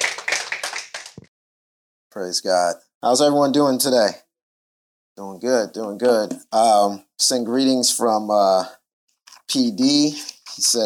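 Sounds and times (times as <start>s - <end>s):
audience clapping hands in welcome: 0.0s - 1.3s
speech: 2.2s - 4.2s, 5.2s - 8.8s, 9.5s - 10.8s.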